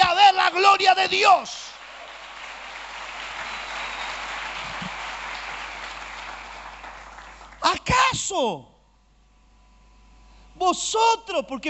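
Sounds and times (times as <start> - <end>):
speech: 0.8 - 1.7, 7.6 - 8.7, 10.6 - 11.6
church audience applause: 1.5 - 7.7.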